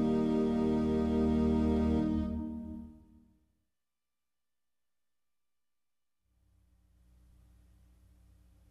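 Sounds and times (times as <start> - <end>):
instrumental praise and worship hymn: 0.0 - 3.3.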